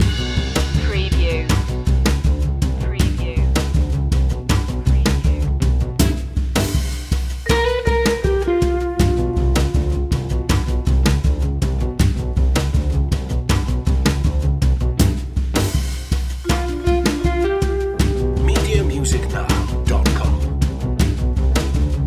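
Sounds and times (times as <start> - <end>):
fast jazz loop: 0.0 - 22.0.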